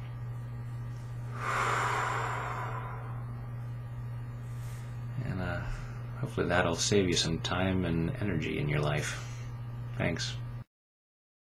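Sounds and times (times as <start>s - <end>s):
low hum: 0.0s - 6.4s
deep breath during a guided tapping session: 1.3s - 3.4s
speech: 6.2s - 9.3s, 10.0s - 10.4s.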